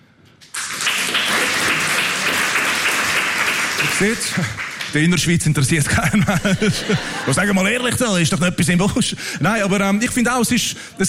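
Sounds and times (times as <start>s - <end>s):
audience clapping: 0.4s - 7.3s
speech: 4.0s - 11.0s
laughter: 5.6s - 8.1s.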